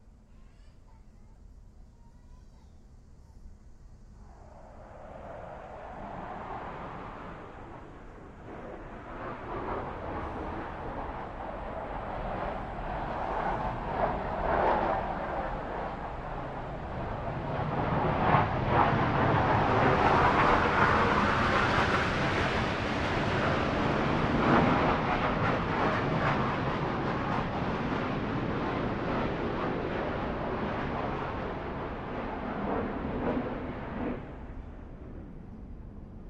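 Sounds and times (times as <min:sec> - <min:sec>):
jet flyover: 0:04.0 - 0:36.2.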